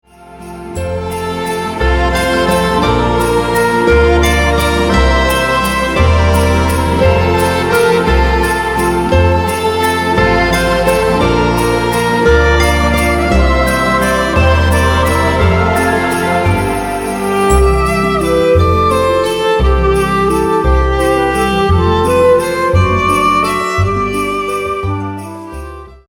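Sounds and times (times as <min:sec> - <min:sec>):
festive waltz: 0:00.1 - 0:26.0.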